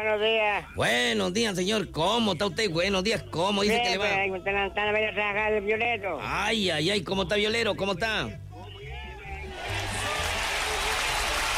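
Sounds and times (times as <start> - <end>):
speech: 0.0 - 8.4
studio applause: 9.5 - 11.5.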